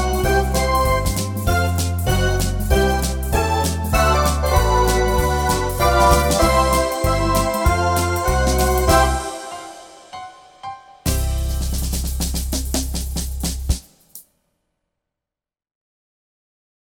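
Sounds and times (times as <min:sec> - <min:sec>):
quickstep music: 0:00.0 - 0:09.8, 0:11.1 - 0:13.9.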